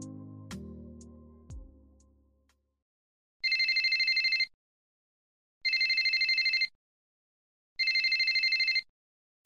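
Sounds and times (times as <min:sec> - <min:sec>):
mobile phone ringtone: 0:03.5 - 0:04.5, 0:05.7 - 0:06.7, 0:07.8 - 0:08.9.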